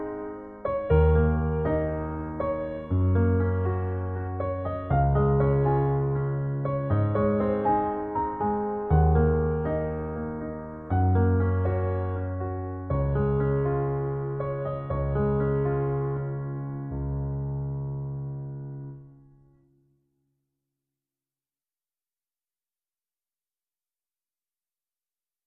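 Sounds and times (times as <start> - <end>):
solo piano: 0.0 - 19.8.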